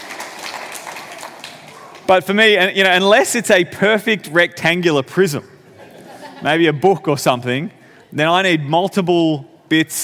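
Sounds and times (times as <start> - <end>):
crowd applauding: 0.0 - 2.2
speech: 2.1 - 5.5, 6.4 - 10.0
laughter: 5.6 - 6.8.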